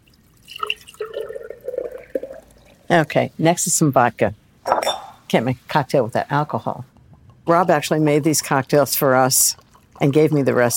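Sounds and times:
watermelon juice pouring into a pitcher: 0.0s - 2.9s
speech: 2.9s - 4.4s, 5.3s - 6.9s, 7.5s - 10.7s.

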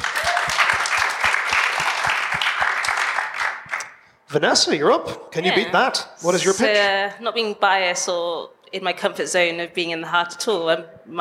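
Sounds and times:
audience applause: 0.0s - 4.0s
speech: 4.3s - 11.1s.

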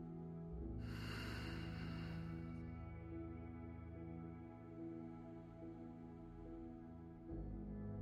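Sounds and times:
sustained gentle musical drone: 0.0s - 8.0s
slow deep breathing in a guided meditation: 0.8s - 3.1s.

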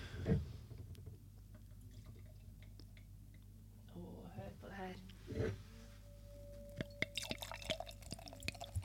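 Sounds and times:
low hum: 0.0s - 8.8s
sparkling pét-nat wine poured into a glass: 7.0s - 8.8s
foaming bubbles of sparkling pét-nat wine fizzing in the glass: 7.2s - 8.8s.

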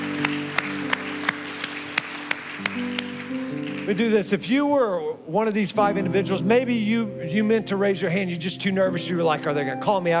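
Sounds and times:
audience applause: 0.0s - 4.2s
speech: 3.9s - 10.1s.

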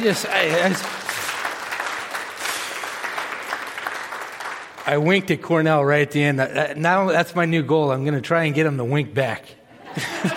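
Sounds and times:
speech: 0.0s - 1.0s, 4.8s - 10.3s
round of applause: 0.0s - 5.4s
laughter: 9.7s - 10.3s.

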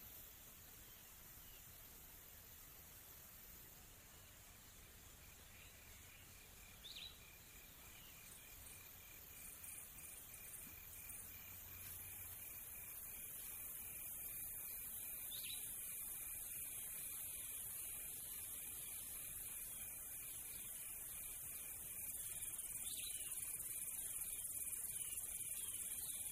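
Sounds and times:
crickets or insects chirring at a farm: 0.0s - 26.3s
bird chirps: 5.2s - 10.6s, 13.2s - 26.3s.

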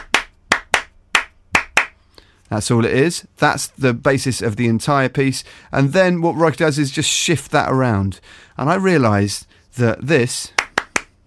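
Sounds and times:
hand clapping rhythmic pattern: 0.0s - 2.0s, 10.6s - 11.2s
speech: 2.5s - 10.6s.

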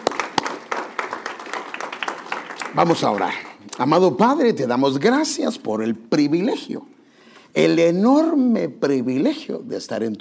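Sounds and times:
audience applauding: 0.0s - 3.6s
speech: 2.7s - 10.1s.

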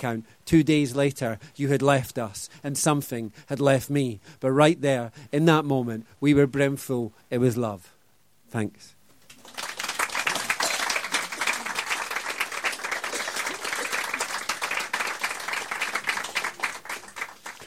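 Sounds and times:
speech: 0.0s - 9.0s
crowd applauding after poem: 9.3s - 17.6s.

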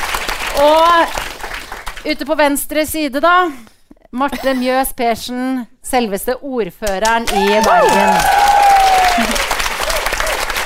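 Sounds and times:
audience applause: 0.0s - 2.0s, 7.3s - 10.6s
speech: 0.6s - 1.2s, 2.0s - 8.4s.

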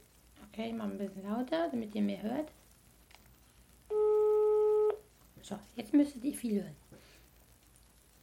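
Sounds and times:
speech: 0.6s - 2.6s, 5.5s - 7.1s
telephone ringback tone during outgoing call: 3.9s - 5.0s.

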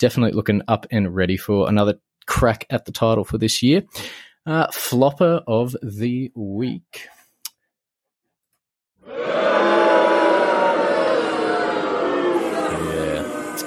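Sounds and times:
speech: 0.0s - 7.2s
crowd booing and hissing sound effect: 9.0s - 13.6s.

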